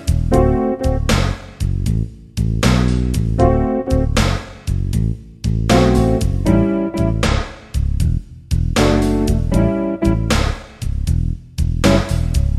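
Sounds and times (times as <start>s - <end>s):
backing track for improvisation practice: 0.0s - 12.5s.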